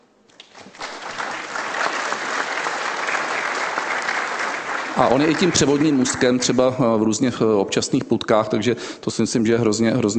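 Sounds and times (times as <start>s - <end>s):
audience applause: 0.5s - 6.8s
speech: 5.0s - 10.1s.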